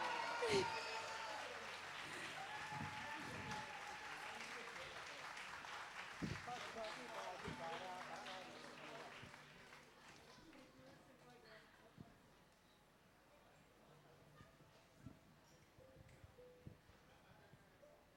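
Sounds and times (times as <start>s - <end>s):
audience applause: 0.0s - 10.8s.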